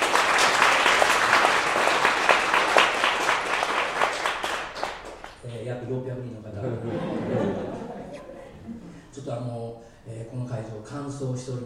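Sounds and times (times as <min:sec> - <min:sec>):
audience applause: 0:00.0 - 0:05.4
laughter: 0:06.5 - 0:09.1
speech: 0:11.2 - 0:11.6.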